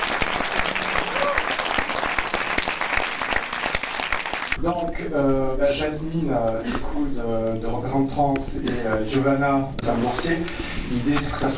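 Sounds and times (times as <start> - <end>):
audience applause: 0.0 - 4.6
speech: 4.6 - 11.5.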